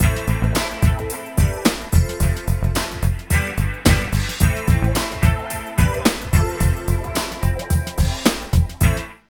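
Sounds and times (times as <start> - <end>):
loop: 0.0 - 9.0.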